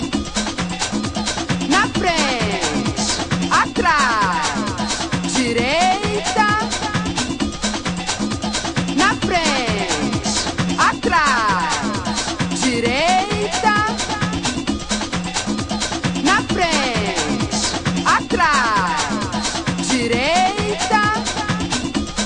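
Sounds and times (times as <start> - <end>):
samba music: 0.0 - 22.2.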